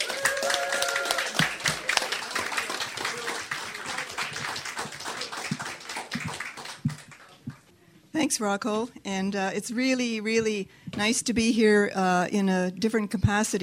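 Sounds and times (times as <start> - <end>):
audience applause: 0.0 - 7.6
speech: 8.2 - 13.6.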